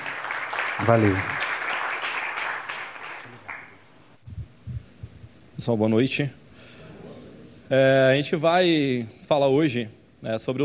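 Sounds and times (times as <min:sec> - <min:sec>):
audience applause: 0:00.0 - 0:03.8
speech: 0:00.8 - 0:01.4, 0:05.6 - 0:06.4, 0:07.7 - 0:10.6.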